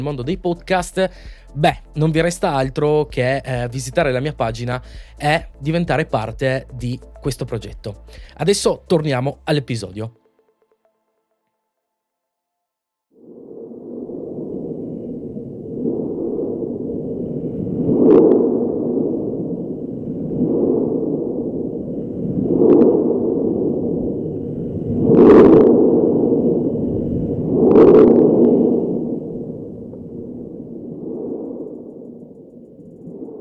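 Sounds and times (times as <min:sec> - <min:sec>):
speech: 0:00.0 - 0:10.2
sea wave vibrations under beach sand on a contact microphone: 0:13.2 - 0:33.3.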